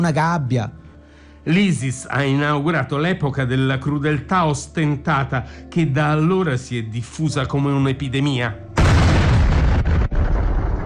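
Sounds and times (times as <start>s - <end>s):
speech: 0.0s - 0.8s, 1.4s - 8.6s
Russian bombs exploding on a theatre in Mariupol: 8.8s - 10.8s.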